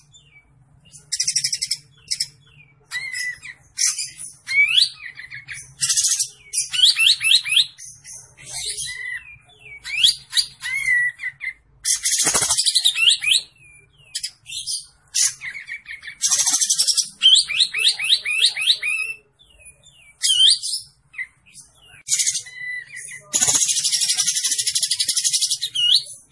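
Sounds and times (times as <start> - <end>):
olive-winged bulbul singing: 0.0 - 26.3.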